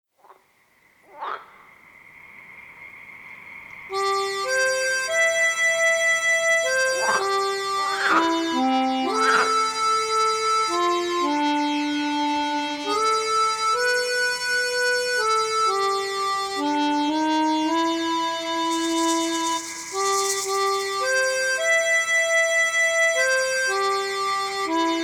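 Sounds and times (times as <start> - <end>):
accordion: 3.9 - 25.0.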